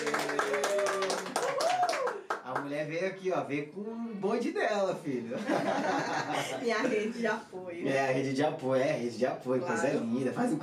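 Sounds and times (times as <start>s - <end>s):
audience applause: 0.0s - 2.4s
speech: 2.7s - 10.6s
laughter: 5.3s - 7.2s.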